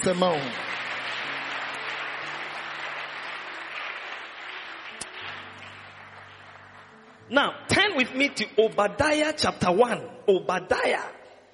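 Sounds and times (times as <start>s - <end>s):
speech: 0.0s - 0.8s, 7.3s - 11.2s
large crowd clapping: 0.0s - 8.4s.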